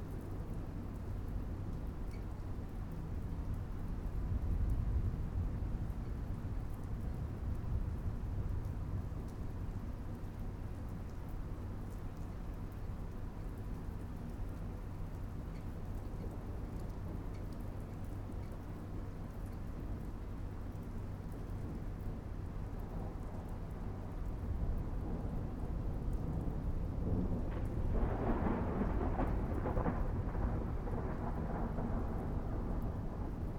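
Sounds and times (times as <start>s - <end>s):
city background noise: 0.0s - 33.5s
thunderstorm: 3.7s - 10.8s, 22.8s - 33.5s.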